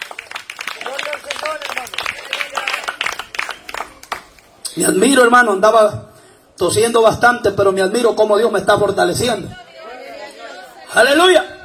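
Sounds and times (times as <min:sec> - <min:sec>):
audience applauding: 0:00.0 - 0:04.5
speech: 0:04.8 - 0:09.6, 0:10.9 - 0:11.5.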